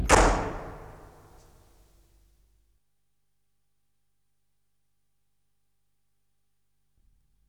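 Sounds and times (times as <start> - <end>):
door closing: 0.0 - 1.5.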